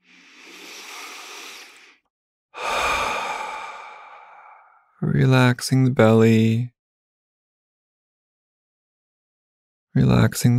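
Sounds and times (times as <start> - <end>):
deep breath in through the nose, out through the mouth: 0.0 - 4.9
speech: 5.0 - 6.7, 10.0 - 10.5.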